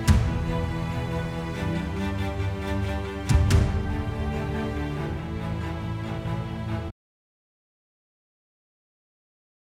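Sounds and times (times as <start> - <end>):
music: 0.0 - 6.9.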